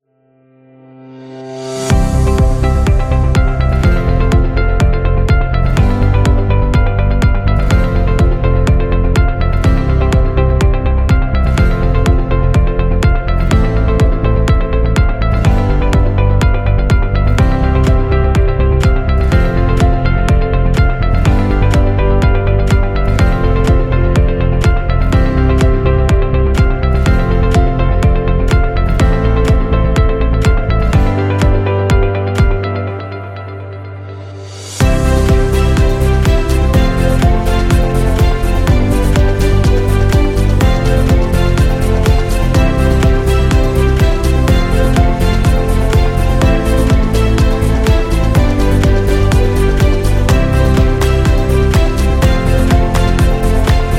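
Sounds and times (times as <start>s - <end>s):
presentation music: 1.1s - 53.9s.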